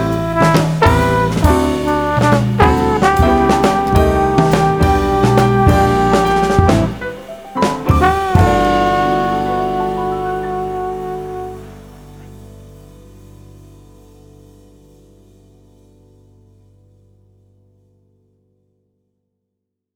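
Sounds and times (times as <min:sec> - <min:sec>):
trombone: 0:00.0 - 0:12.9.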